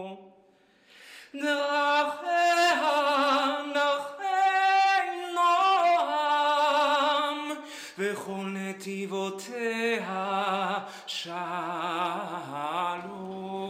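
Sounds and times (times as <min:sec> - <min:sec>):
tenor singing a Hebrew liturgical hymn: 0:01.3 - 0:13.6.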